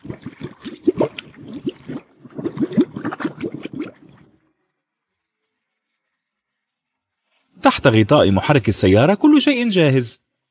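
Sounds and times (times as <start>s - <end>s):
window cleaning fluid glugging as poured: 0.0s - 4.6s
speech: 7.6s - 10.2s.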